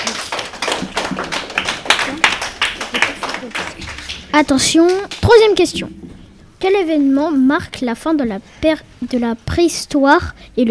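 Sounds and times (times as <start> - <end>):
crowd applauding: 0.0 - 6.2
speech: 4.4 - 6.0, 6.6 - 10.7.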